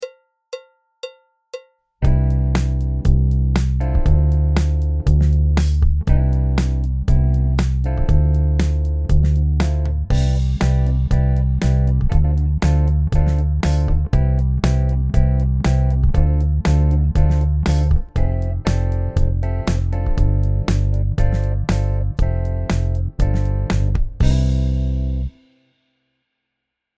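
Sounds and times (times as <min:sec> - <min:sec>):
groove music: 0:02.0 - 0:25.4.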